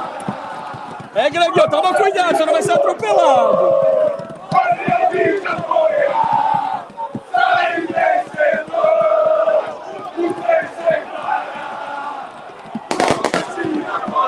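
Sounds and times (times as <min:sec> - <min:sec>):
large crowd of fans cheering and chanting: 0:00.0 - 0:14.2
speech: 0:01.2 - 0:03.9
sharp crackling pops: 0:12.6 - 0:14.2.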